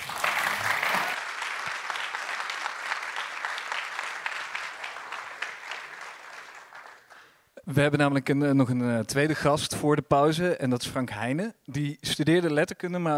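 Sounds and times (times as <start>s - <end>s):
audience applause: 0.0s - 7.4s
speech: 7.7s - 13.1s.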